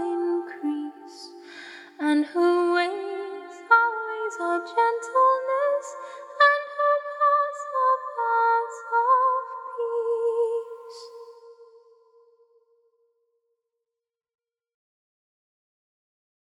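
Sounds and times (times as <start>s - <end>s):
a cappella hymn singing: 0.0s - 11.8s.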